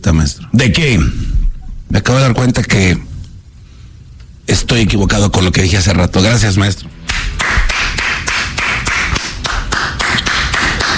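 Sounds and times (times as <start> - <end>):
speech: 0.0 - 1.2, 1.9 - 3.1, 4.5 - 7.6
one person clapping hands: 7.1 - 10.9.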